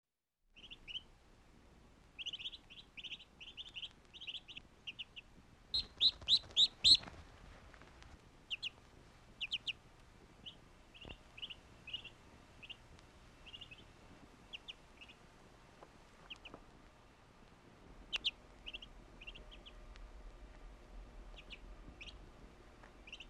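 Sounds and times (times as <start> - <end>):
bird chirping: 0.6 - 1.1, 2.2 - 7.1, 8.5 - 8.8, 9.4 - 9.8, 10.4 - 15.2, 16.2 - 16.6, 18.1 - 19.9, 21.3 - 22.2, 23.0 - 23.2.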